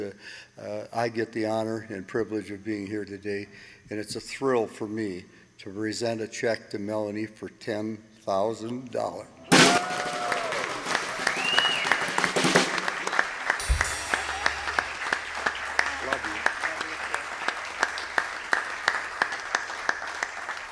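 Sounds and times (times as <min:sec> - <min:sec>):
speech: 0:00.0 - 0:10.2
audience applause: 0:09.6 - 0:20.7.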